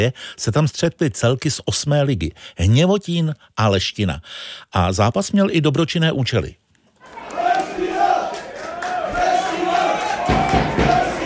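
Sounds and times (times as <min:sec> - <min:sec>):
speech: 0:00.0 - 0:06.6
football fans chanting and cheering in stadium: 0:07.0 - 0:11.2
claps or drum hits: 0:10.0 - 0:11.2.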